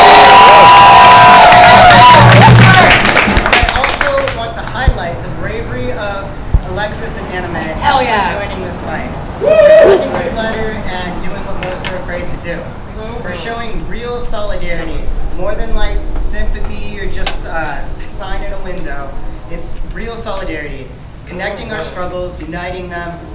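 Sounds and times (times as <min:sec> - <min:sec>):
crowd cheering: 0:00.0 - 0:04.0, 0:09.4 - 0:10.4
crowd applauding: 0:00.0 - 0:04.7.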